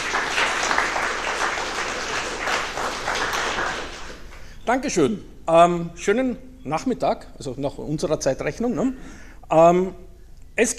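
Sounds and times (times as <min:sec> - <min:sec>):
audience applauding: 0:00.0 - 0:04.5
speech: 0:04.7 - 0:10.0, 0:10.6 - 0:10.7.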